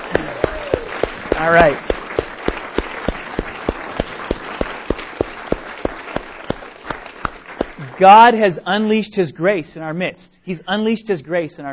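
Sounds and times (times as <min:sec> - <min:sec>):
audience applause: 0:00.0 - 0:08.4
speech: 0:01.4 - 0:01.9, 0:08.0 - 0:11.7.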